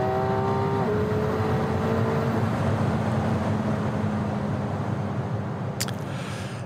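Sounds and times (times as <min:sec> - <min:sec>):
sports car engine roaring under hard acceleration: 0:00.0 - 0:06.6
sharp click: 0:05.8 - 0:06.1.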